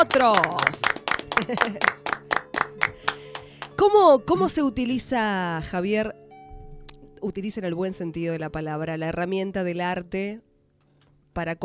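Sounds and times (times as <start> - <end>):
speech: 0.0 - 2.0, 3.8 - 6.2, 7.2 - 10.5, 11.4 - 11.6
applause in a radio studio: 0.0 - 3.9.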